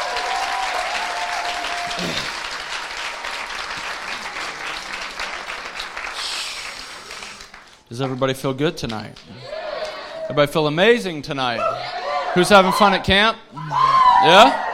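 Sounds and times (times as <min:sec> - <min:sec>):
audience applause: 0:00.0 - 0:08.2
speech: 0:02.0 - 0:02.3, 0:07.9 - 0:09.5, 0:10.3 - 0:14.6.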